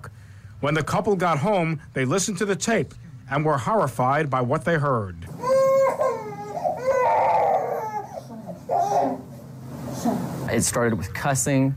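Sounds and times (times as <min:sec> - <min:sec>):
speech: 0:00.6 - 0:05.3, 0:10.5 - 0:11.7
infant crying: 0:05.3 - 0:09.4.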